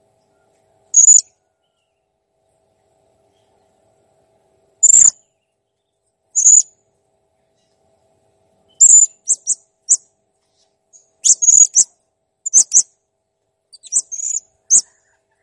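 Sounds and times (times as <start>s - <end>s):
blue-crowned hanging parrot chirps and squeaky trills: 1.0s - 1.3s, 4.8s - 5.1s, 6.4s - 6.7s, 8.8s - 10.0s, 11.2s - 11.9s, 12.5s - 12.9s, 13.8s - 15.4s.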